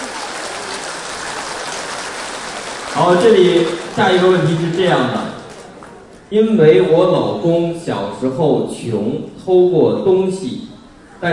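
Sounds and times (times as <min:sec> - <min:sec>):
applause: 0:00.0 - 0:06.2
speech: 0:03.0 - 0:05.3, 0:06.3 - 0:11.3.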